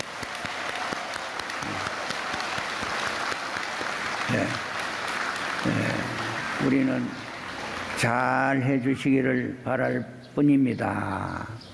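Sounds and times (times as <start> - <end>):
crowd applause: 0.0 - 9.0
speech: 6.6 - 7.2, 8.0 - 11.7.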